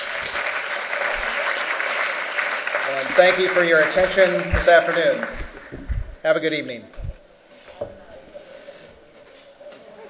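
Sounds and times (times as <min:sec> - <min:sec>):
audience applauding the panelists: 0:00.0 - 0:06.0
speech: 0:02.9 - 0:05.4, 0:06.2 - 0:07.0.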